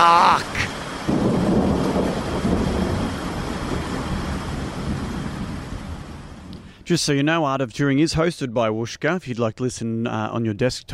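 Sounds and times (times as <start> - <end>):
constant hiss of rain in a storm: 0.0 - 7.1
wind in a storm with deep rumbling roar: 0.0 - 7.2
speech: 6.9 - 10.9.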